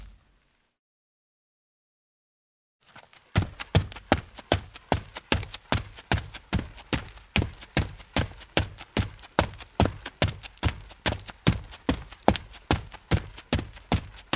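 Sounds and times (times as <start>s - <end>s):
footsteps: 3.0s - 14.3s.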